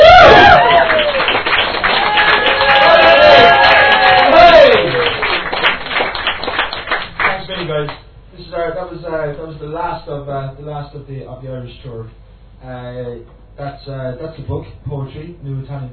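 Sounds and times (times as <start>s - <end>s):
audience cheering and applauding: 0.0s - 7.4s
speech: 11.7s - 15.9s.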